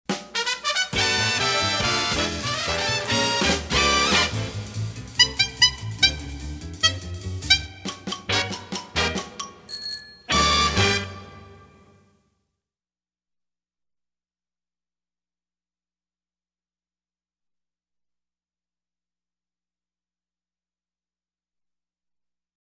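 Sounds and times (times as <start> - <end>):
horn: 0.1 - 9.5, 10.3 - 12.1.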